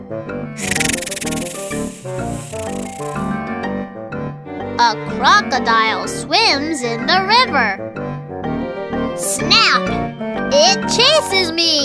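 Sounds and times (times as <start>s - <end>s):
speech: 0.1s - 1.1s, 4.8s - 7.9s, 9.2s - 11.8s
bright bouncy musical backing: 0.6s - 3.3s
snake slithering: 0.6s - 3.4s.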